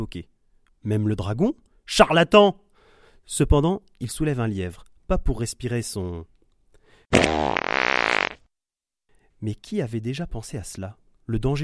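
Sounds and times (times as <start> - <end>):
speech: 0.0 - 2.6, 3.2 - 6.3, 7.1 - 7.6, 9.4 - 11.6
fart: 7.1 - 8.4.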